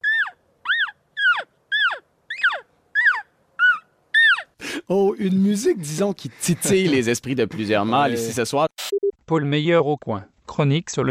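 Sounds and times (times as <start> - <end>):
turkey call lure imitating a mating hen: 0.0 - 4.5
speech: 4.9 - 8.7, 9.3 - 11.1.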